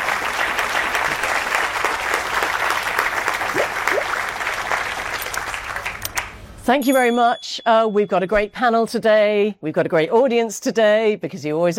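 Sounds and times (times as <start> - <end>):
audience applause: 0.0 - 6.4
speech: 6.7 - 11.7.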